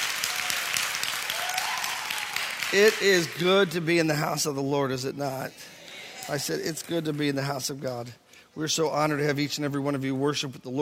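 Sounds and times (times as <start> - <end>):
church congregation clapping in praise during a service: 0.0 - 4.2, 5.8 - 7.8
speech: 2.7 - 10.8.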